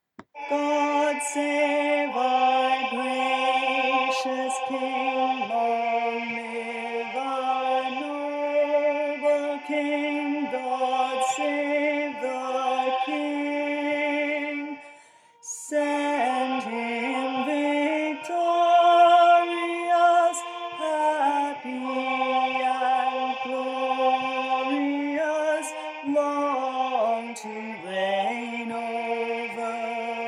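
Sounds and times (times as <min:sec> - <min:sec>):
tenor singing: 0:00.2 - 0:30.2.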